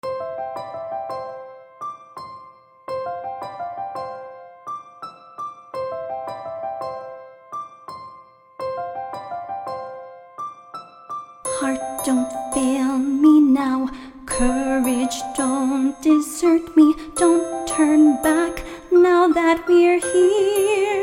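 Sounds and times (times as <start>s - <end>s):
person singing: 11.5s - 21.0s.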